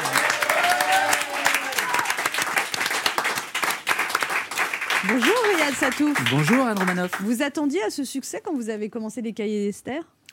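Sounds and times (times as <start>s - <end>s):
studio audience applauding: 0.0s - 7.4s
speech: 5.0s - 10.2s.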